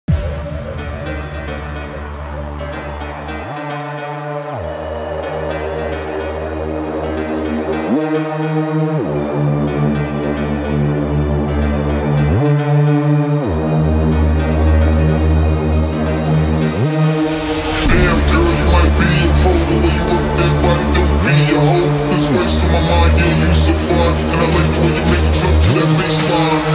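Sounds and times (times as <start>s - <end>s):
bassline: 0.0s - 26.7s.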